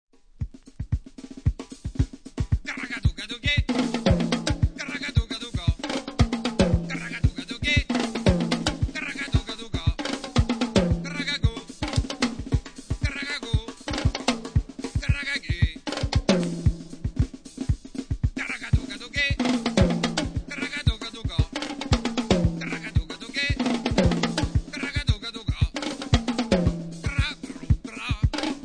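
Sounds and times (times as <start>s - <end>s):
drums: 0.2s - 28.6s.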